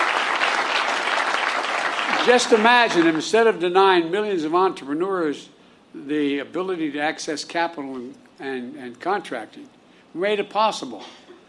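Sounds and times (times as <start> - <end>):
crowd clapping: 0.0 - 3.6
speech: 2.3 - 11.2.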